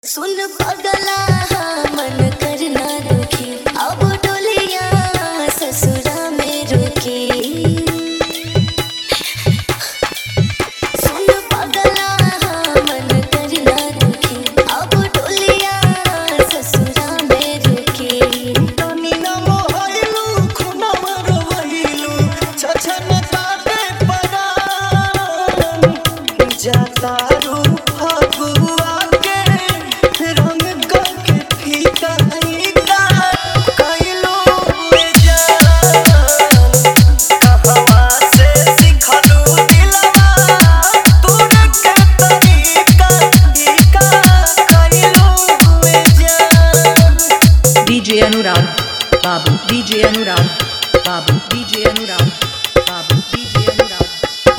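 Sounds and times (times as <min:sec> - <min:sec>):
sad DJ remix with dholak bass: 0:00.3 - 0:54.5.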